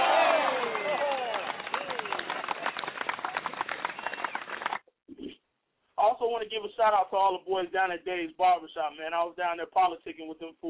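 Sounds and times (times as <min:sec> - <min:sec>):
audience applause: 0:00.0 - 0:04.8
speech: 0:06.2 - 0:10.6.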